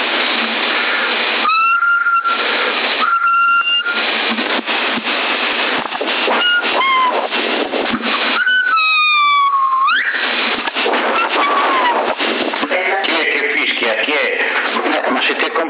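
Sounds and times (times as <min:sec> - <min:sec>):
thin hissy CB radio channel 10 in Sassari: 0:00.0 - 0:15.6
whistled tones through CB radio channel 10 in Sassari: 0:01.4 - 0:04.0, 0:06.3 - 0:07.3, 0:08.3 - 0:10.4, 0:11.0 - 0:12.2
voices talking over CB radio: 0:10.8 - 0:15.6.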